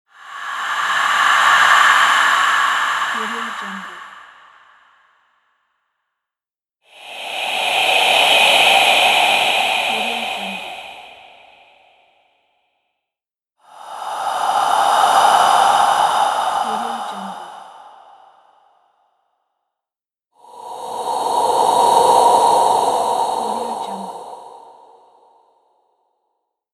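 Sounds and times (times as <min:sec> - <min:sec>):
ghostly breathing: 0:00.1 - 0:05.4, 0:06.8 - 0:12.4, 0:13.6 - 0:18.9, 0:20.4 - 0:25.4.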